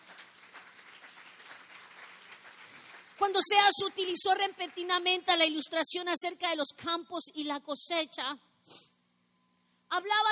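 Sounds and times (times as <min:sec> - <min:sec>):
audience clapping: 0:00.0 - 0:05.3
speech: 0:03.2 - 0:08.8, 0:09.9 - 0:10.2.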